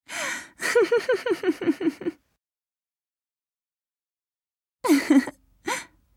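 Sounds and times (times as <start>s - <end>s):
person laughing: 0.6s - 2.2s, 4.8s - 5.9s.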